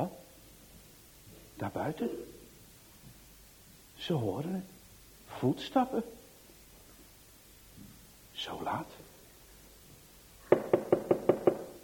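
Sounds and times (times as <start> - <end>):
speech: 1.6 - 2.3, 4.0 - 6.2, 8.4 - 9.0
knocking on a door: 10.5 - 11.8.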